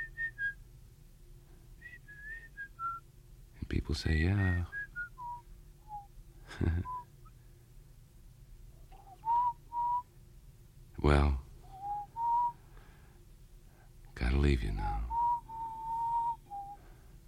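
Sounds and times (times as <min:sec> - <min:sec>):
person whistling a pop-style jukebox tune: 0:00.0 - 0:00.6, 0:01.8 - 0:03.0, 0:04.6 - 0:06.1, 0:06.8 - 0:07.1, 0:09.0 - 0:10.0, 0:11.7 - 0:12.6, 0:15.1 - 0:16.8
speech: 0:03.7 - 0:04.8, 0:06.6 - 0:07.0, 0:11.0 - 0:11.4, 0:14.4 - 0:15.0.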